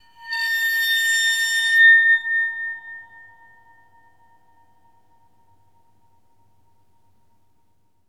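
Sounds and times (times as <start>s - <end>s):
waterphone: 0.0s - 5.4s.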